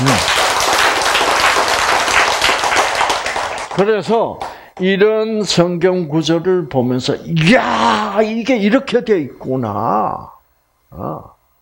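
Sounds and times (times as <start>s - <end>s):
audience applause: 0.0s - 4.5s
speech: 3.8s - 11.3s.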